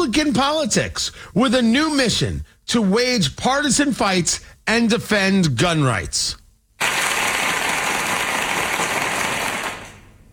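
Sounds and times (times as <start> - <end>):
speech: 0.1 - 6.4
crowd applause: 6.8 - 10.2.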